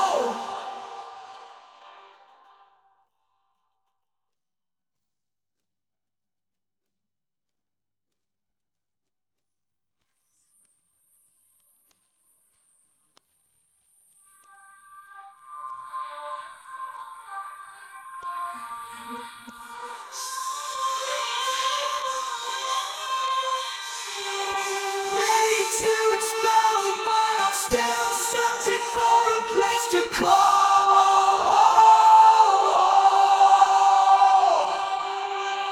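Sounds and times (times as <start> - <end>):
vocals in G minor: 0.0 - 3.0, 14.3 - 35.6.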